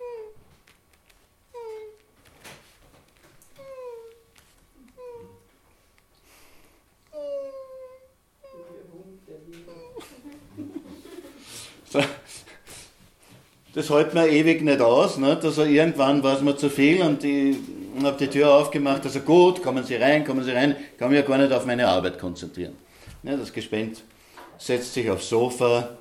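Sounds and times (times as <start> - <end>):
voice imitating soft quiet crying: 0.0 - 0.4, 1.5 - 2.0, 3.6 - 4.2, 4.8 - 5.5, 7.1 - 8.9, 9.6 - 10.4, 16.6 - 19.9
laughter: 9.7 - 12.7
speech: 11.9 - 12.4, 13.8 - 25.9.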